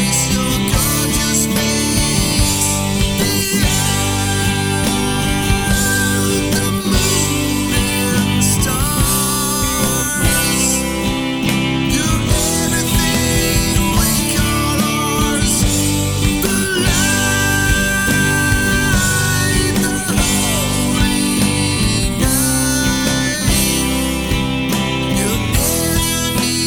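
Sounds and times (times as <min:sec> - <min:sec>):
ambient harmony karaoke music: 0:00.0 - 0:26.6.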